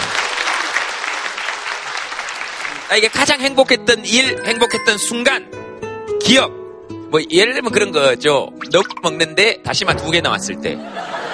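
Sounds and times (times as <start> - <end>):
crowd applauding: 0.0 - 3.3
speech: 2.9 - 5.5, 6.3 - 11.2
laughter: 10.7 - 11.3.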